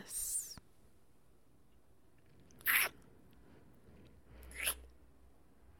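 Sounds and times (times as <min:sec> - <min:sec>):
wet noises: 0:02.5 - 0:03.0.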